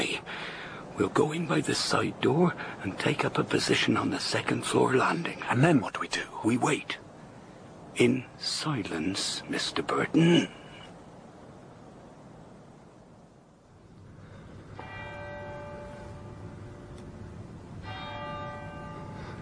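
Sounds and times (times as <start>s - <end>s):
steady hiss of noise: 0.0s - 19.4s
speech: 1.0s - 7.0s, 8.0s - 10.6s
church clock bell striking two: 14.8s - 16.9s, 17.7s - 19.4s.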